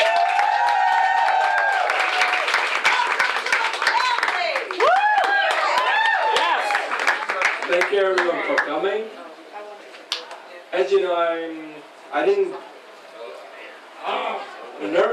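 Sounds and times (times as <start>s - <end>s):
cheering voices and swooping whoops: 0.0s - 7.0s
crowd clapping: 0.0s - 8.8s
speech: 7.8s - 9.2s, 10.7s - 12.7s.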